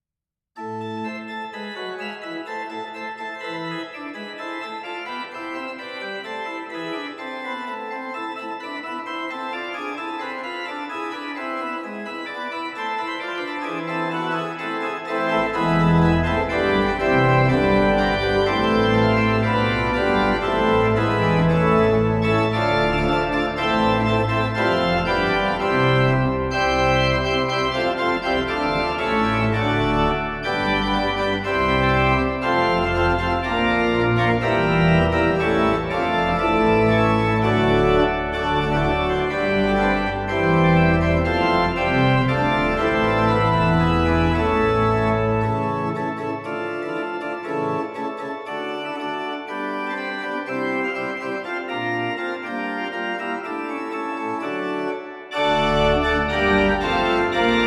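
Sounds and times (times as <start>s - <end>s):
Reis organ mixture stops: 0.6s - 57.6s.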